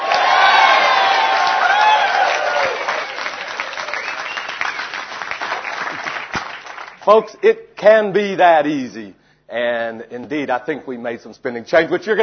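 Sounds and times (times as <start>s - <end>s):
audience applause: 0.0s - 7.0s
speech: 7.1s - 12.2s.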